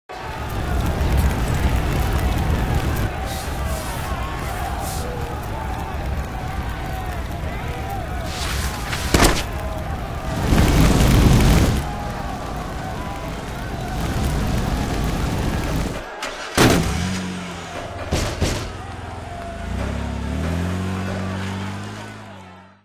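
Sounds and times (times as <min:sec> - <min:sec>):
rioting crowd: 0:00.0 - 0:22.8.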